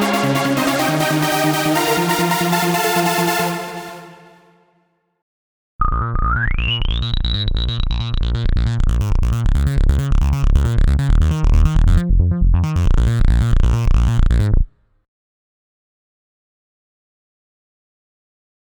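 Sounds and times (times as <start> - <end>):
techno trance electro music: 0.0 - 4.4, 6.0 - 14.6.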